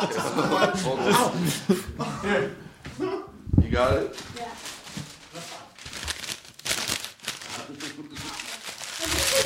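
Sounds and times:
speech: 0.1 - 4.5
paper being folded for origami: 4.1 - 9.4.

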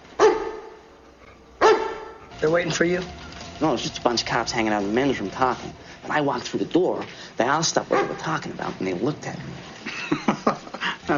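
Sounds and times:
German Shepherd barking: 0.2 - 0.9, 1.6 - 2.3, 7.9 - 8.4
speech: 2.4 - 11.1
laughter: 9.8 - 11.1.

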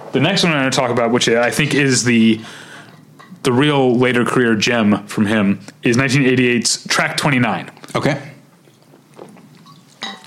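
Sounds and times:
speech: 0.1 - 2.8, 3.4 - 8.3
person sipping water: 7.8 - 10.2.

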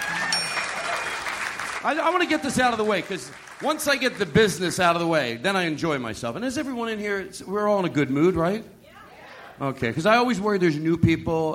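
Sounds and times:
crowd applause: 0.0 - 4.4
faint high ringing tone: 0.1 - 1.4
speech: 1.8 - 8.8, 9.6 - 11.5.

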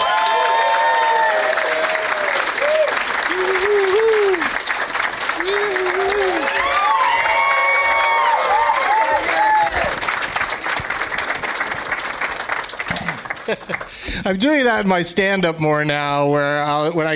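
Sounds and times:
whoops and cheers: 0.0 - 4.6, 5.4 - 10.0
crowd clapping: 0.0 - 14.7
speech: 14.3 - 17.1.

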